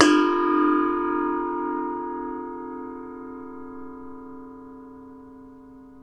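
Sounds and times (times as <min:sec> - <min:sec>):
Nepalese Asian cymbals: 0:00.0 - 0:04.2.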